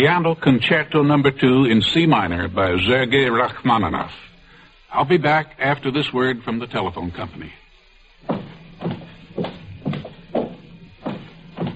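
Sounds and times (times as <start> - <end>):
speech: 0.0 - 4.3, 4.9 - 7.6
faint hiss: 0.0 - 11.7
footsteps at an even walking pace: 8.2 - 11.7.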